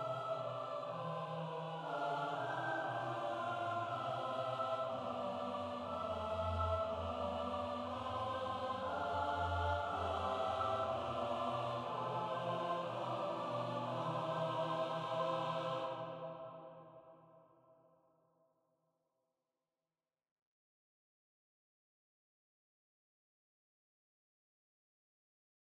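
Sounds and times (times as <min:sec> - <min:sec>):
choir singing a motet: 0:00.0 - 0:17.4.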